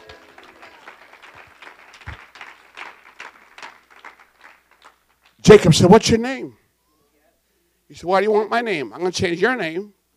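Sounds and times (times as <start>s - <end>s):
audience clapping hands: 0.0s - 5.4s
speech: 5.5s - 6.6s, 7.9s - 10.0s.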